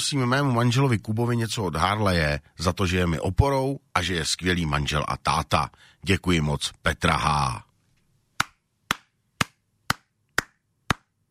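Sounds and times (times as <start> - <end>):
speech: 0.0 - 7.7
sharp hand claps: 8.4 - 11.2.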